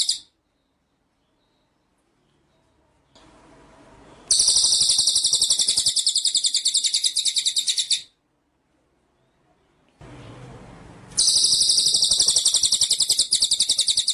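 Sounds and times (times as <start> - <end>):
White-rumped shama song, buzzy rolling trill: 4.3 - 8.2, 11.2 - 14.1.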